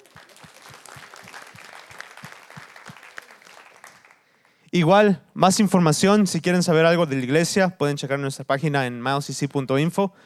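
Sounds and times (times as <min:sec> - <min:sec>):
audience clapping: 0:00.0 - 0:04.6
speech: 0:04.7 - 0:10.2.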